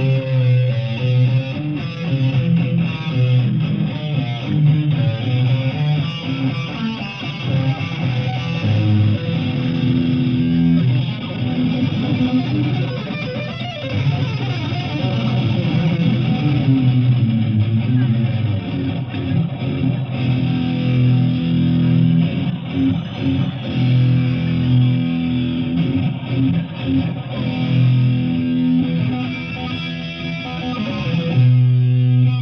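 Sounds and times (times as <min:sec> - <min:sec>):
live guitar solo at a concert in Novorossiysk: 0:00.0 - 0:32.4.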